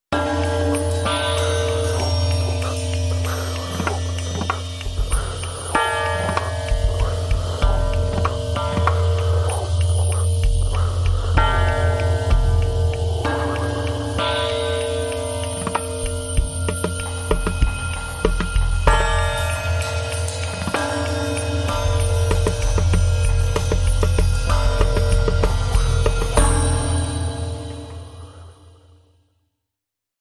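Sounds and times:
bathing bowls: 0:00.1 - 0:29.1.

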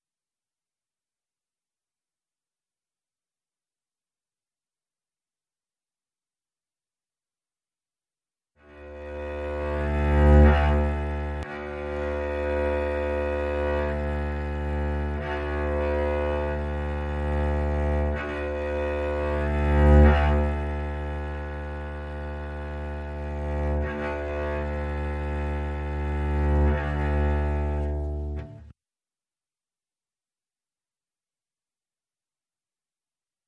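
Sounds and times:
upright bass: 0:08.8 - 0:28.6.

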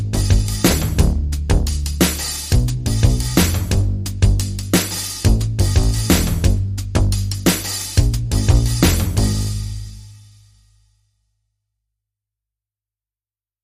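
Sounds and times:
big beat drum and bass music: 0:00.0 - 0:10.2.

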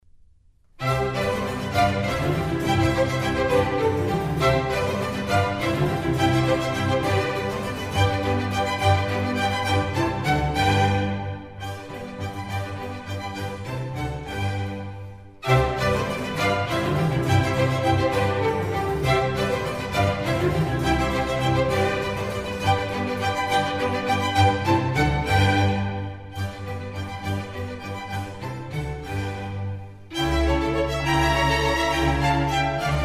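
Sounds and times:
concerto for strings in C major: 0:00.8 - 0:33.0.

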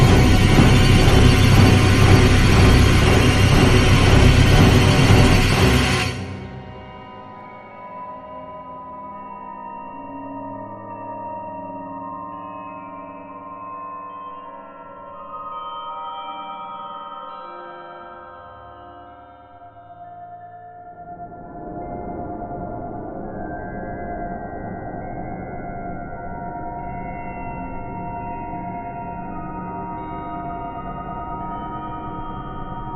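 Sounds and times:
thriller noise: 0:00.0 - 0:07.0.

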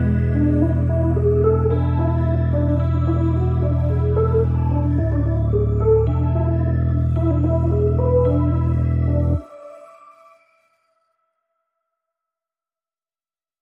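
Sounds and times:
underscore music: 0:00.0 - 0:10.5.

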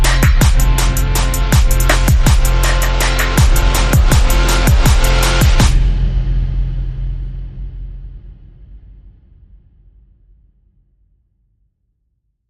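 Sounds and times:
groove with bass: 0:00.0 - 0:08.6.

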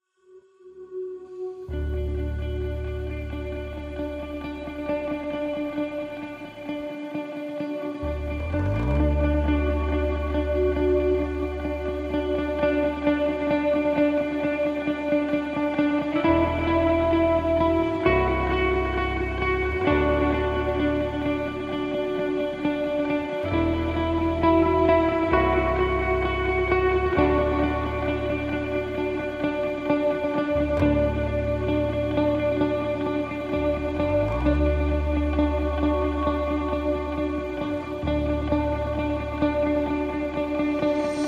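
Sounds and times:
music mix: 0:00.3 - 0:41.2.

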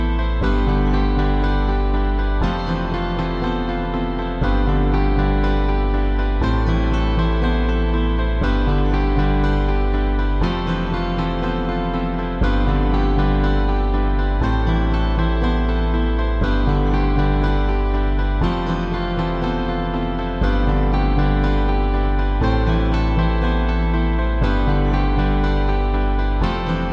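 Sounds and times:
guitars: 0:00.0 - 0:26.9
piano: 0:00.0 - 0:26.9
synths: 0:00.0 - 0:26.9.

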